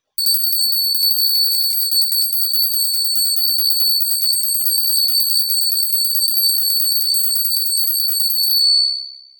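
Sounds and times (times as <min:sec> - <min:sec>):
Friedensglocke peace bell ringing: 0:00.2 - 0:09.2.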